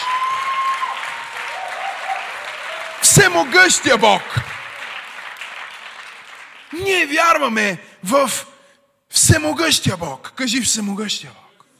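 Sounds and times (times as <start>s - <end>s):
audience applause: 0.0s - 7.2s
speech: 3.1s - 4.5s, 6.8s - 8.5s, 9.3s - 11.5s.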